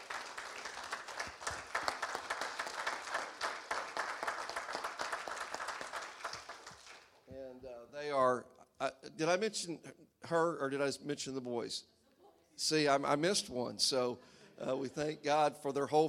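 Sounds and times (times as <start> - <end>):
crowd applause: 0.0 - 7.2
speech: 8.4 - 11.9, 12.6 - 16.0.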